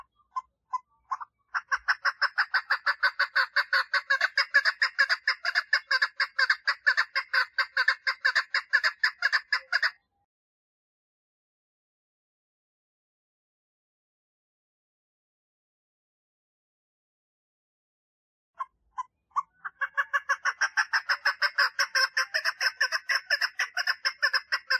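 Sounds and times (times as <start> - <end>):
partridge song of raspy repeated notes: 0.0 - 10.0, 18.6 - 24.7.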